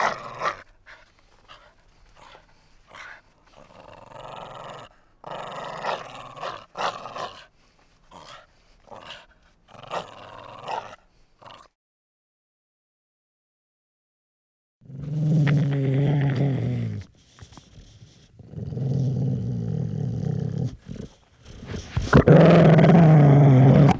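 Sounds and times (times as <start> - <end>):
dog growling: 0.0 - 11.7, 14.9 - 23.9.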